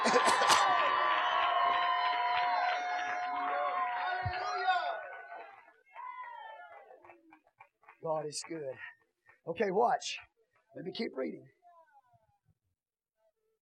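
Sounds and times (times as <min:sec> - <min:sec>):
audience shouting: 0:00.0 - 0:06.9
audience clapping: 0:00.0 - 0:10.2
speech: 0:08.1 - 0:11.6.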